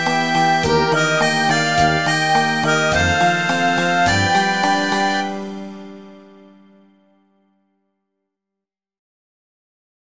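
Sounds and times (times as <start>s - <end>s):
underwater remix music: 0.0s - 6.5s.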